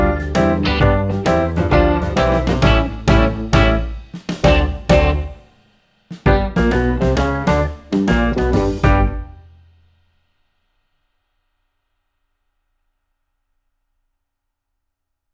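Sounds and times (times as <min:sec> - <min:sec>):
piano playing: 0:00.0 - 0:05.4, 0:06.3 - 0:09.5.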